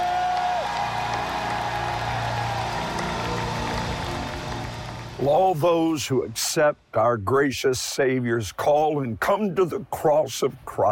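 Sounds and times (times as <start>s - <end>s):
whoops and shouts in worship: 0.0s - 4.1s
crowd clapping in worship: 0.0s - 5.6s
speech: 5.2s - 10.9s.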